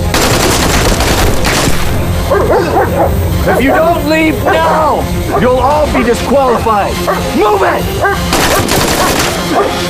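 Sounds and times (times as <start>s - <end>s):
dense gunfire as soldiers open fire: 0.1s - 2.3s, 8.3s - 9.5s
speech: 3.5s - 8.9s, 9.5s - 9.8s.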